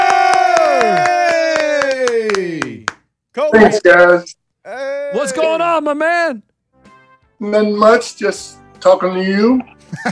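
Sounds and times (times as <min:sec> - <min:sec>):
voices whooping and cheering: 0:00.0 - 0:02.6
crowd clapping: 0:00.0 - 0:03.1
speech: 0:03.5 - 0:06.5, 0:07.4 - 0:10.1.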